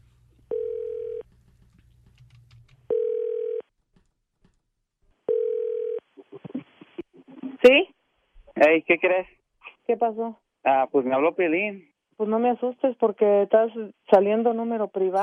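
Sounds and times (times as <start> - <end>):
telephone line tone beeps: 0.5 - 1.2, 2.9 - 3.6, 5.3 - 6.0
faint clicks and rustling: 1.3 - 2.9
speech: 7.6 - 7.9, 8.6 - 15.2.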